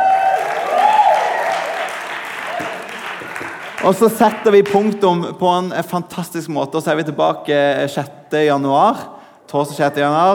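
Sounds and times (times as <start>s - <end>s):
whistles and cheers: 0.0s - 3.0s
audience applause: 0.0s - 4.8s
speech: 3.8s - 10.3s.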